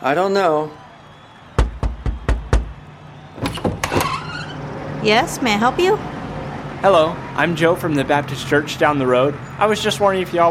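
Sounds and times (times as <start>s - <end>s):
speech: 0.0s - 0.8s, 5.0s - 6.1s, 6.8s - 10.5s
knocking on a door: 1.6s - 2.8s.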